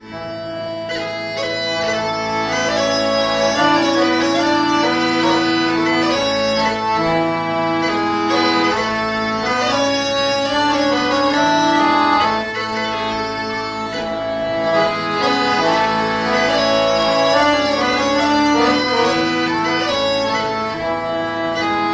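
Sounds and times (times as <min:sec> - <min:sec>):
bagpipes playing a march: 0:00.0 - 0:21.9.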